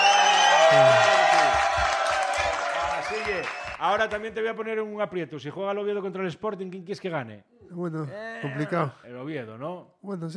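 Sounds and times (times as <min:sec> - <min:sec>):
people whooping: 0:00.0 - 0:04.1
audience clapping and cheering: 0:00.0 - 0:04.4
speech: 0:00.7 - 0:01.1, 0:03.4 - 0:10.3.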